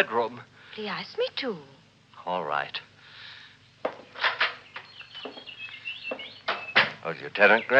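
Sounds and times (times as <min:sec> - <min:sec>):
speech: 0:00.0 - 0:02.9, 0:07.0 - 0:07.7
canaries chirping in a bird room: 0:04.0 - 0:07.7.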